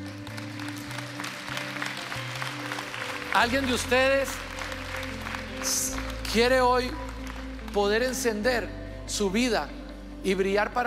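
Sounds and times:
audience applause: 0:00.0 - 0:07.8
speech: 0:03.4 - 0:04.5, 0:05.6 - 0:07.0, 0:07.7 - 0:10.8.

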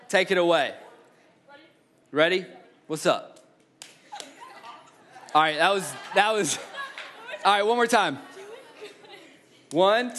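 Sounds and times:
speech: 0:00.1 - 0:00.8, 0:02.1 - 0:03.4, 0:05.3 - 0:06.7, 0:07.4 - 0:08.3, 0:09.7 - 0:10.1
hand claps: 0:03.4 - 0:04.4, 0:06.9 - 0:07.2
laughter: 0:04.0 - 0:09.7.

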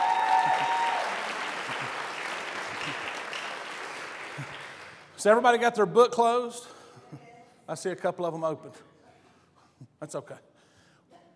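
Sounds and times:
audience round of applause: 0:00.0 - 0:05.1
speech: 0:05.2 - 0:06.8, 0:07.7 - 0:08.9, 0:10.0 - 0:10.5.

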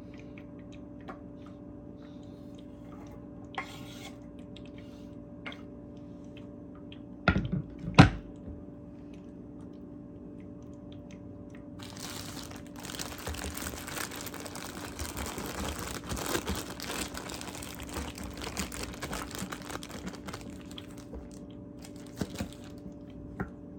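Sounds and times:
steady low hum: 0:00.0 - 0:23.7
crisp crunching and rustling of carrot: 0:11.8 - 0:23.1.

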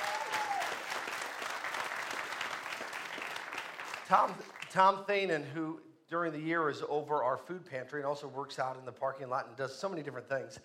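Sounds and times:
audience clapping hands in praise: 0:00.0 - 0:05.0
speech: 0:04.1 - 0:10.6.

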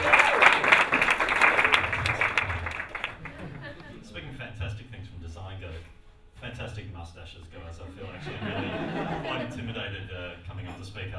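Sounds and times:
audience applause: 0:00.0 - 0:04.0
laughter: 0:02.0 - 0:04.4, 0:07.8 - 0:09.9.

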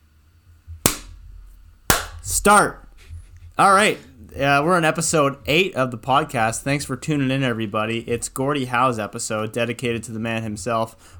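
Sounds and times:
big hand slap for edit sync: 0:00.8 - 0:01.2, 0:01.9 - 0:02.3
speech: 0:02.2 - 0:02.8, 0:03.6 - 0:11.1.

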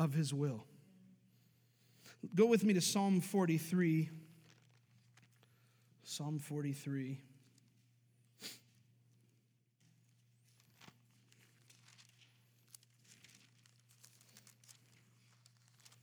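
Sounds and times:
speech: 0:00.0 - 0:00.7, 0:02.2 - 0:04.2, 0:06.0 - 0:07.3, 0:08.4 - 0:08.6
low steady hum: 0:00.0 - 0:16.0
congregation turning Bible pages: 0:04.4 - 0:05.5, 0:10.4 - 0:16.0.

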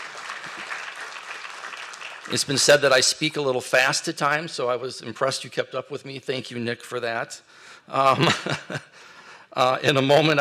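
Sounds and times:
audience applause: 0:00.0 - 0:02.9
speech: 0:02.3 - 0:10.3
laughter: 0:08.0 - 0:09.0.

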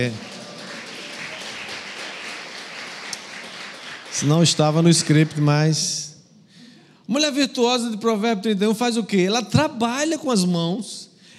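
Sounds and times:
speech: 0:00.0 - 0:00.3, 0:04.2 - 0:06.1, 0:07.1 - 0:11.1
applause: 0:00.0 - 0:06.0.

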